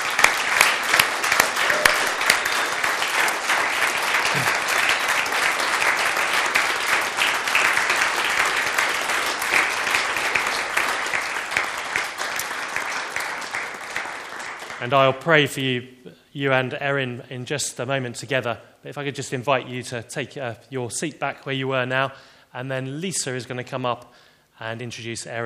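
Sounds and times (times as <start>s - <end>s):
audience applause: 0.0s - 14.9s
speech: 14.8s - 25.4s.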